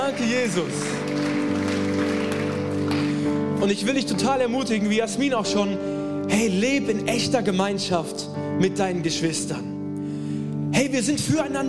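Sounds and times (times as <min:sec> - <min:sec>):
audience applause: 0:00.0 - 0:03.6
speech: 0:00.1 - 0:01.4, 0:03.6 - 0:09.7, 0:10.7 - 0:11.6.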